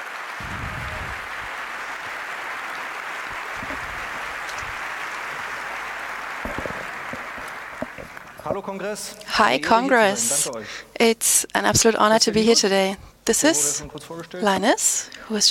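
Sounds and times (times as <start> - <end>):
audience applause: 0.0 - 8.5
speech: 8.5 - 15.4.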